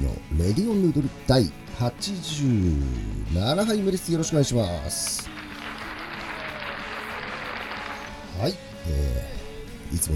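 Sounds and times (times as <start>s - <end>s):
speech: 0.4s - 5.4s, 8.4s - 10.1s
applause: 5.0s - 8.3s.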